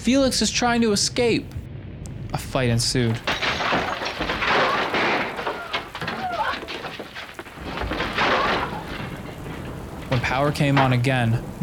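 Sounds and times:
speech: 0.0 - 1.6, 2.3 - 3.4, 10.3 - 11.6
thunder rumbling: 0.0 - 11.6
heavy rain: 2.3 - 11.6.

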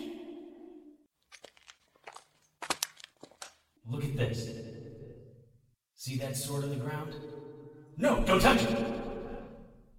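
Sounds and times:
foil Pop-Tart wrappers crinkling and crumpling: 1.3 - 3.6
speech: 3.9 - 4.7, 6.0 - 7.4, 8.0 - 9.0.

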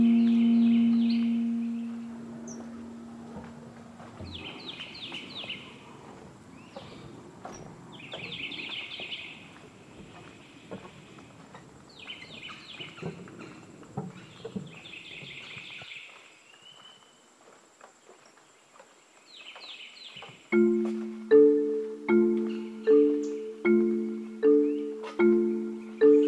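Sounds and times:
low steady hum: 0.0 - 4.7, 20.6 - 26.2
birds chirping in the Lettuce Lakes cypress grove: 0.0 - 5.9, 6.5 - 17.2, 19.2 - 26.2.

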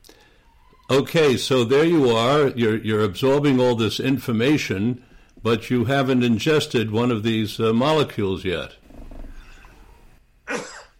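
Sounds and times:
speech: 0.9 - 8.8
person sneezing: 10.4 - 10.9.

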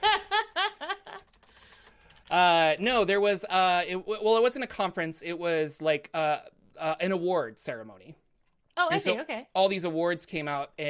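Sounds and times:
laughter: 0.0 - 1.2
faint computer keyboard typing to search Google: 1.0 - 3.2
speech: 2.4 - 8.2, 8.8 - 10.8.

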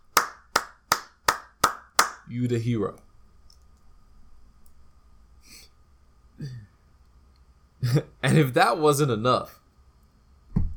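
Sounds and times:
clapping: 0.2 - 2.2
speech: 2.3 - 3.0, 7.9 - 9.6.

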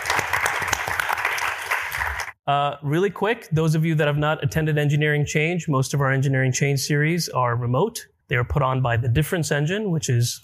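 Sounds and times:
audience applause: 0.0 - 2.4
speech: 2.5 - 10.4.

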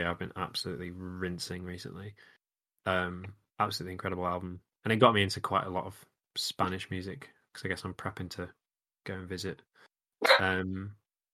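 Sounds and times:
speech: 0.0 - 11.0
dog barking: 10.2 - 10.4.

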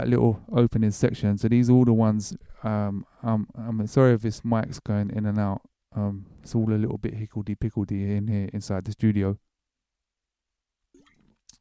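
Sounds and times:
speech: 0.0 - 9.5
person gulping water: 11.0 - 11.5.

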